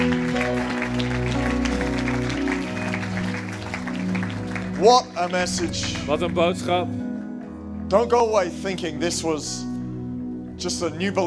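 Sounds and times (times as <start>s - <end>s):
audience applause: 0.0s - 6.2s
speech: 4.8s - 7.0s, 7.9s - 9.7s, 10.6s - 11.2s.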